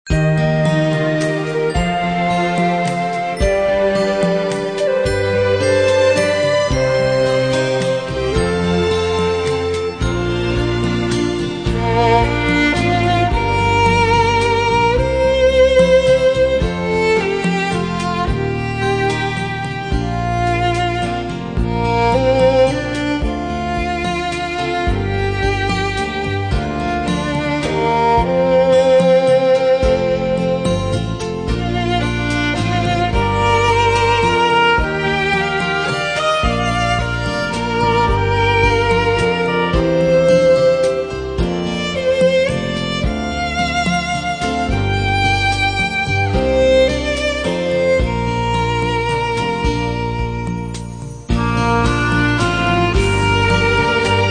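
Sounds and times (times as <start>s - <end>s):
instrumental praise music: 0.1s - 54.2s.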